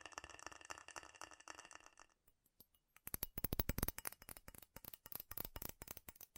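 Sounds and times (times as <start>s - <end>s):
fast furious tapping on metal: 3.0s - 6.3s.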